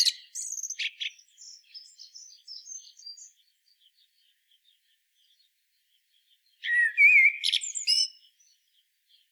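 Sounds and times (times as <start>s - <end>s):
common blackbird Turdus merula singing: 0.0s - 9.2s.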